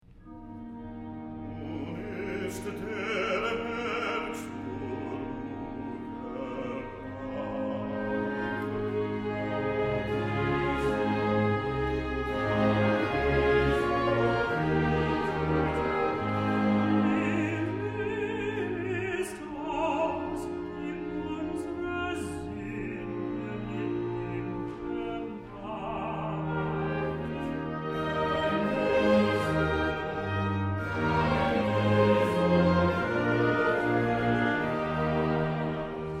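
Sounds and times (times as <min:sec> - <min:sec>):
recitative singing: 0:01.0 - 0:36.1.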